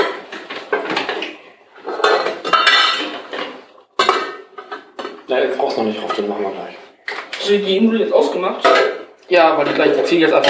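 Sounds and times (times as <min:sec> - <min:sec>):
pot lid and metal kitchenware clattering while pasta cooks: 0:00.0 - 0:05.3, 0:06.0 - 0:06.4, 0:08.6 - 0:09.0, 0:09.7 - 0:10.4
speech: 0:05.3 - 0:06.8, 0:07.4 - 0:10.4.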